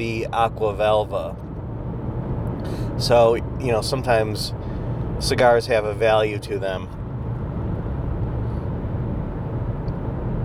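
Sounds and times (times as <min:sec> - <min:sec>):
speech: 0:00.0 - 0:01.5, 0:02.6 - 0:04.6, 0:05.2 - 0:07.0
car engine and tire noise on the Massachusetts Turnpike: 0:00.0 - 0:10.4.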